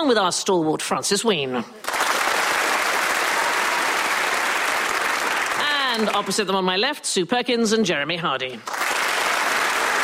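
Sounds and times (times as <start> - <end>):
speech: 0.0 - 2.0, 6.0 - 8.8
studio audience applause welcoming News Quiz panellists: 1.8 - 6.4, 8.6 - 10.0.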